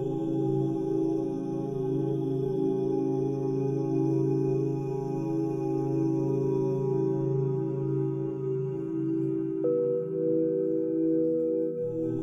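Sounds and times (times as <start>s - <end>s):
person chanting OM: 0.0s - 12.2s
singing bowls: 6.3s - 12.2s.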